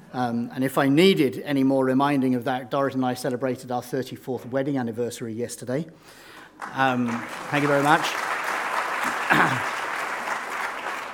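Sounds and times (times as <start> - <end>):
speech: 0.1 - 8.3, 9.3 - 9.7
audience applause: 6.5 - 11.1.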